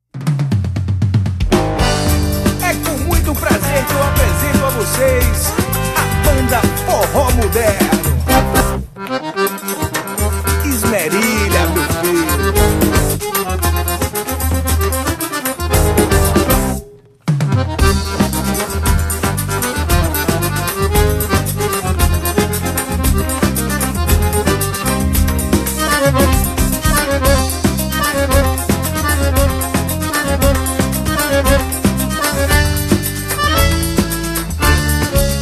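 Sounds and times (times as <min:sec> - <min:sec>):
modern instrumental forró music: 0:00.2 - 0:35.4.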